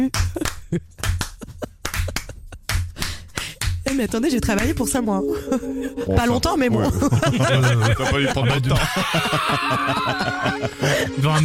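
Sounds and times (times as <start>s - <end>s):
speech: 0.0s - 1.1s, 4.0s - 11.4s
hands clapping in studio applause: 0.0s - 4.8s
laughter: 0.4s - 2.6s, 5.4s - 11.4s.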